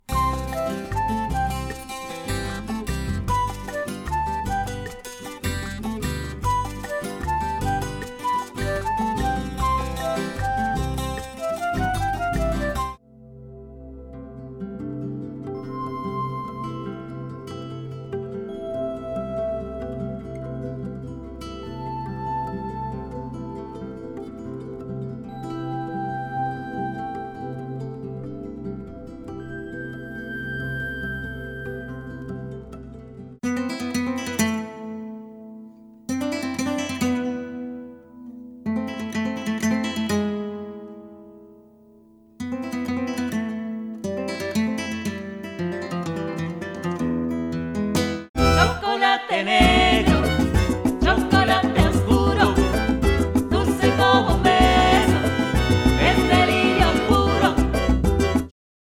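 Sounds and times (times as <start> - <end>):
music: 0.0 - 58.5.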